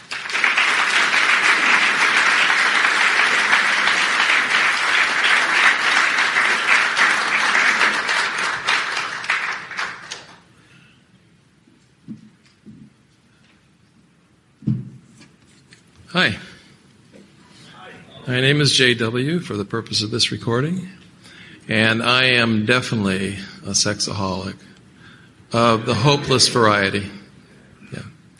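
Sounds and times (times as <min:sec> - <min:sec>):
applause greeting a speaker at a Friday night session of a 2017 Ontario conference: 0:00.0 - 0:10.6
speech: 0:16.2 - 0:16.4, 0:18.3 - 0:21.0, 0:21.7 - 0:24.7, 0:25.5 - 0:27.2.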